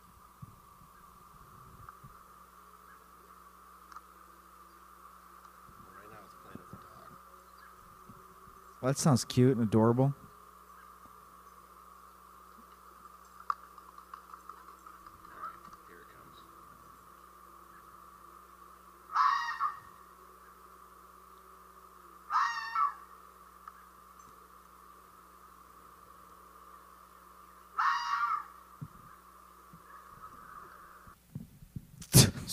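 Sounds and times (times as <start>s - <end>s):
speech: 8.8s - 10.2s
fox screaming: 19.1s - 20.0s, 22.3s - 23.1s, 27.8s - 28.6s.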